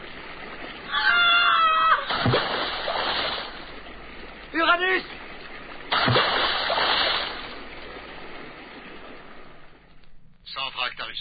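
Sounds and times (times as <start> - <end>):
splash of someone falling into a basin of water: 0.0 - 3.9, 5.0 - 9.8
rushing water near rapids: 0.0 - 11.1.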